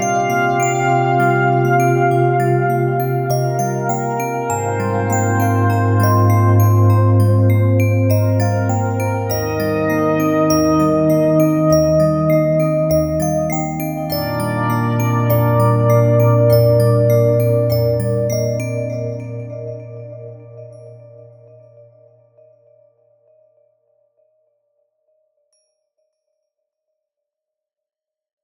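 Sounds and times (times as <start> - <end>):
glass bells in ambient music: 0.0 - 21.3
ambient synthesizer: 0.0 - 23.8.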